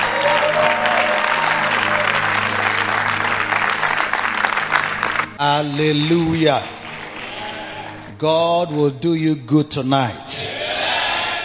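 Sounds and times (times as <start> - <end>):
audience applause: 0.0 - 5.4, 6.0 - 8.1
speech: 5.4 - 6.8, 8.2 - 10.4.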